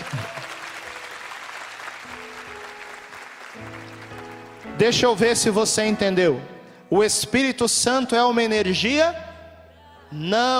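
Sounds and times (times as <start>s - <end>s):
audience applause: 0.0s - 4.7s
speech: 4.8s - 9.3s, 10.1s - 10.5s.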